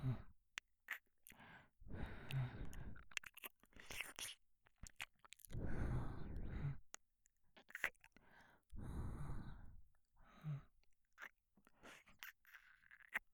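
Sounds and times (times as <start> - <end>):
man breathing heavily: 1.2 - 3.0, 5.5 - 6.9, 7.7 - 10.8, 11.7 - 13.0
man licking ear on left side: 2.2 - 5.6, 7.6 - 8.2, 11.2 - 13.3.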